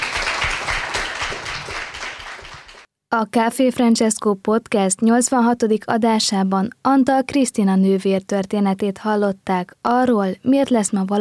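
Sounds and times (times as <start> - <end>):
audience applause: 0.0 - 2.9
speech: 3.1 - 11.2.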